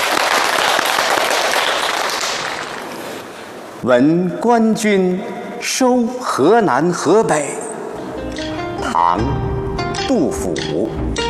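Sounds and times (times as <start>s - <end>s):
audience applause: 0.0s - 3.3s
speech: 3.8s - 7.6s, 9.1s - 9.4s, 10.1s - 11.2s.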